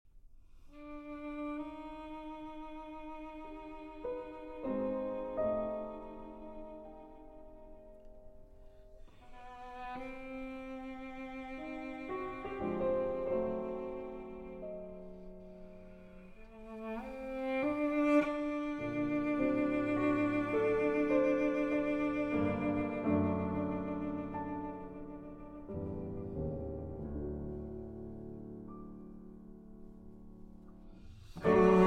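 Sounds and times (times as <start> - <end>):
cello sonata: 0.4 - 31.8.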